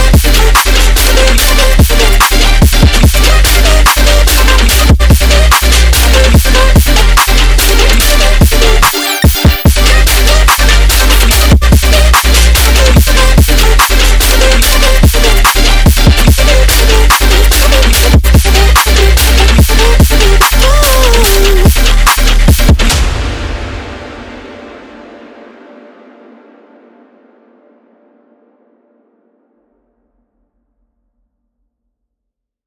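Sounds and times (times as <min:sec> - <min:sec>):
melodic dubstep music: 0:00.0 - 0:25.3.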